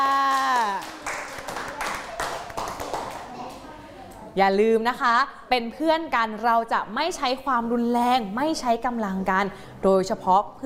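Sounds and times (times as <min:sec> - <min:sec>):
group of children clapping for themselves: 0:00.0 - 0:03.7
speech: 0:04.4 - 0:10.6.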